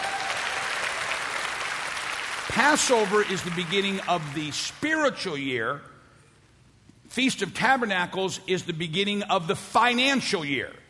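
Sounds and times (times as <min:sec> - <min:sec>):
audience clapping: 0:00.0 - 0:04.7
speech: 0:02.5 - 0:05.9, 0:07.1 - 0:10.8.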